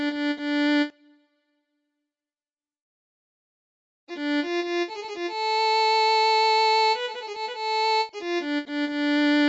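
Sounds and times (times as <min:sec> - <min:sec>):
violin: 0:04.1 - 0:09.4.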